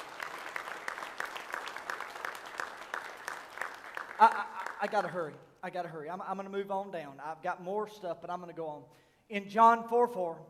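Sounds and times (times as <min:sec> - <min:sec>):
audience clapping in praise: 0:00.0 - 0:05.3
speech: 0:04.2 - 0:10.4.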